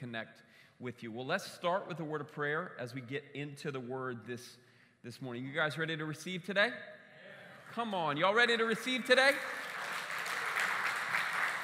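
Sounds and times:
speech: 0.1s - 7.0s, 7.7s - 9.7s
audience clapping: 8.7s - 11.6s.

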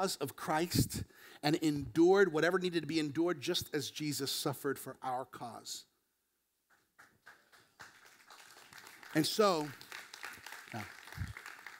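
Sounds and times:
speech: 0.0s - 5.9s, 9.2s - 9.8s, 10.7s - 11.3s
slow audience clapping: 6.6s - 11.7s.

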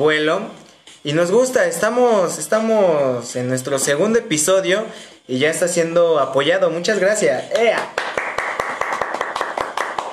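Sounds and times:
speech: 0.0s - 8.2s
hand clapping: 7.5s - 10.1s.

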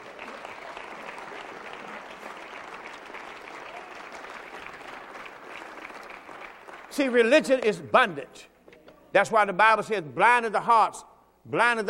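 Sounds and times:
audience clapping hands: 0.0s - 7.8s
speech: 7.0s - 8.5s, 9.2s - 11.8s.

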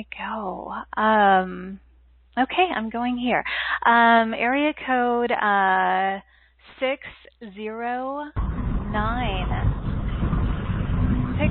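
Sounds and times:
speech: 0.0s - 9.6s
car road noise heard over a phone call: 8.4s - 11.4s.

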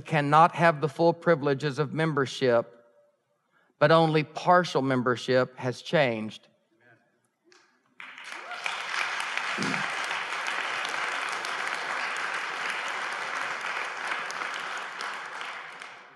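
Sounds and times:
speech: 0.0s - 2.8s, 3.8s - 6.5s
audience applause: 8.0s - 16.1s.

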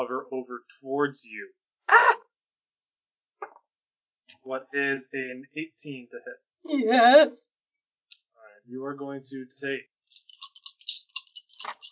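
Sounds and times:
speech: 0.0s - 2.2s, 4.3s - 7.6s, 8.7s - 10.2s
many dice rolling: 10.2s - 11.9s.

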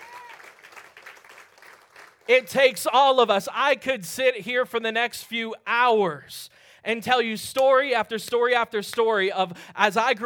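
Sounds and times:
audience applauding: 0.0s - 2.3s
speech: 2.3s - 10.2s.

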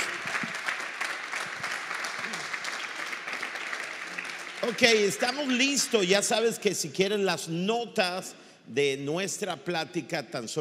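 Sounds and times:
audience applause: 0.0s - 6.0s
speech: 4.6s - 10.5s.

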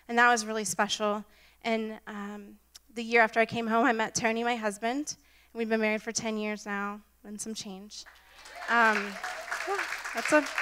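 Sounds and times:
speech: 0.1s - 10.6s
audience applause: 8.1s - 10.6s.

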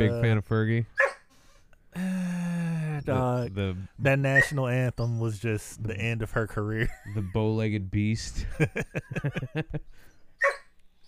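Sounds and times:
speech: 0.0s - 1.0s, 3.0s - 10.6s
dog barking: 1.0s - 1.2s, 10.4s - 10.7s
laughter: 6.7s - 7.6s, 8.4s - 9.9s.

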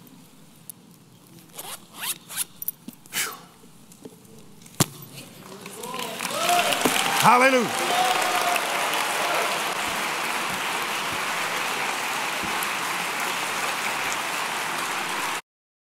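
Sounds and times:
crowd applause: 5.4s - 15.4s
speech: 7.2s - 7.8s.

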